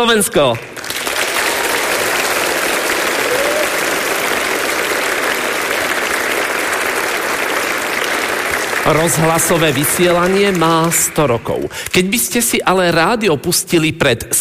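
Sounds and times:
speech: 0:00.0 - 0:00.8, 0:08.9 - 0:14.3
audience applause at a live school event greeting viewers across Slovakia: 0:00.7 - 0:11.8.

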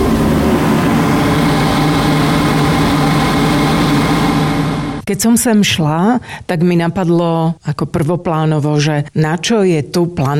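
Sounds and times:
planetarium vacuum pump: 0:00.0 - 0:05.0
planetarium ventilation fan: 0:00.0 - 0:05.2
speech: 0:05.1 - 0:10.3.

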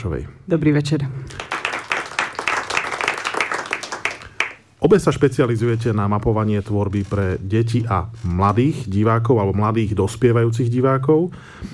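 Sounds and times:
speech: 0:00.0 - 0:01.4, 0:04.8 - 0:11.7
audience applause in a garden: 0:01.3 - 0:04.6.

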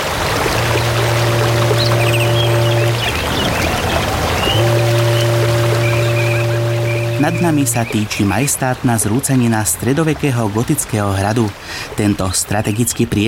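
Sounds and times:
river water rushing at a confluence: 0:00.0 - 0:12.2
low droning motor hum: 0:00.4 - 0:08.0
faint bird chirps: 0:00.7 - 0:08.0
speech: 0:07.3 - 0:13.2.

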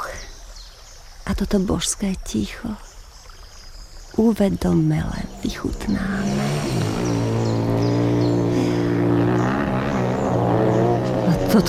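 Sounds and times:
speech: 0:01.4 - 0:02.9, 0:04.2 - 0:07.0
motorcycles riding past: 0:05.3 - 0:11.6.

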